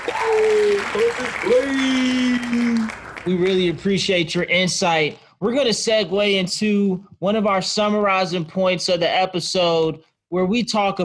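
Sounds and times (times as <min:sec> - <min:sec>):
audience applause: 0:00.0 - 0:04.0
speech: 0:03.3 - 0:11.0.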